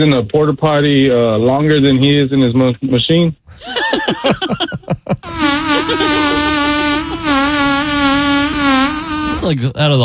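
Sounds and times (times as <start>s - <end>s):
speech: 0.0s - 8.0s, 9.5s - 10.0s
laughter: 3.5s - 7.8s
fart sounding like buzzing flies: 5.2s - 9.5s.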